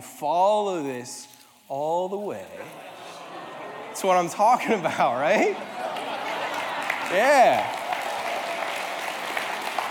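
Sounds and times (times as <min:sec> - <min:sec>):
speech: 0:00.2 - 0:03.0, 0:04.0 - 0:05.8, 0:07.1 - 0:07.8
laughter: 0:02.5 - 0:08.6
audience applause: 0:05.6 - 0:09.8.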